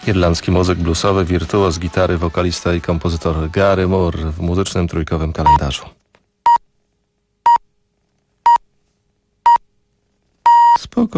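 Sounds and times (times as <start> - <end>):
speech: 0.0 - 6.0, 11.0 - 11.1
radio time signal beeps: 10.5 - 10.8.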